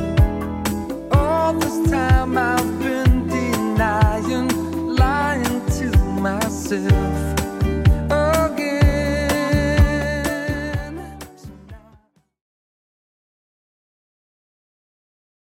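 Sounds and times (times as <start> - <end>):
80s Redrum drum machine beat: 0.0 - 11.9.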